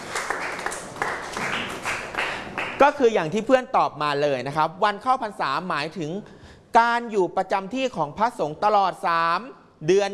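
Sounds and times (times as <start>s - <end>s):
classmates clapping in a classroom for a pupil: 0.0s - 3.0s
speech: 2.8s - 10.1s.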